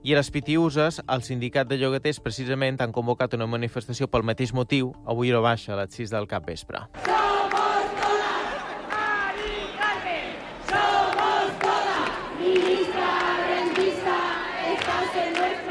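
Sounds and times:
speech: 0.0s - 7.4s
large crowd of protesters shouting and chanting: 7.0s - 15.6s
sharp claps or bangs: 7.0s - 15.6s.

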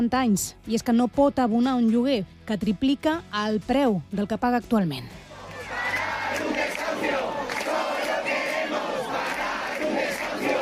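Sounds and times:
speech: 0.0s - 5.3s
protest crowd shouting and chanting: 5.2s - 10.6s.

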